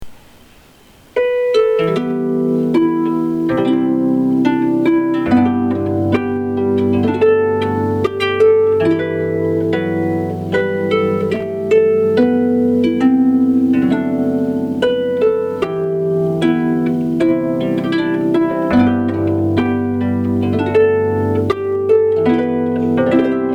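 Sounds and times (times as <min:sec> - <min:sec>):
harp: 0:00.0 - 0:23.5.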